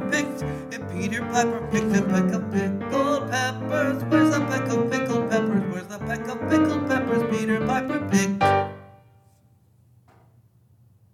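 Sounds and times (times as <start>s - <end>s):
tenor voice singing a part of a mixed three-part choral piece: 0.0s - 8.6s.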